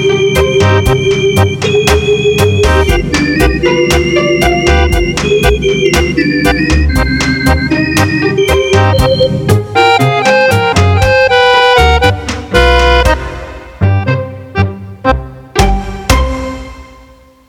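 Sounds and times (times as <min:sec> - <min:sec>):
organ playing a tango: 0:00.0 - 0:17.4.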